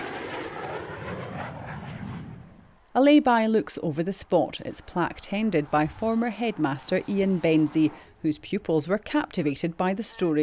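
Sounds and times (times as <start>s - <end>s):
Typhoon fighter jet roar during a tribute flypast from RAF Lossiemouth: 0.0s - 2.9s, 4.0s - 8.3s
speech: 3.0s - 10.4s.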